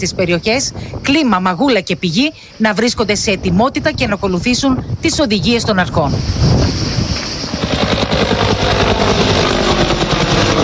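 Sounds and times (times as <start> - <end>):
speech: 0.0 - 6.9
wind noise: 0.0 - 10.6
firefighting helicopter rotor thumping over a wildfire: 6.2 - 10.6.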